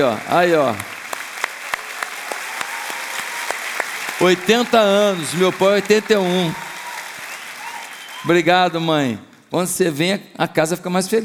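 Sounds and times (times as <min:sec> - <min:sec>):
speech: 0:00.0 - 0:00.9, 0:04.2 - 0:06.7, 0:08.2 - 0:11.2
audience applause: 0:00.0 - 0:09.0.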